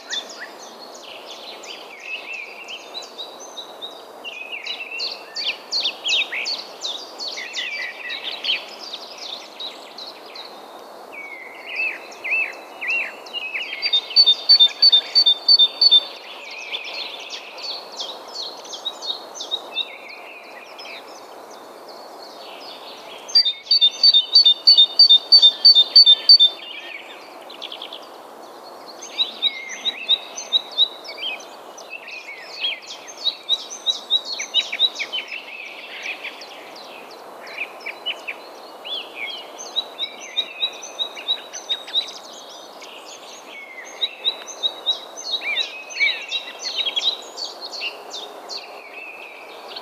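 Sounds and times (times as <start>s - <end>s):
constant hiss: 0.0s - 49.8s
other small birds chirping: 0.0s - 49.8s
great tit giving high two-tone calls: 14.1s - 16.1s, 23.4s - 26.6s.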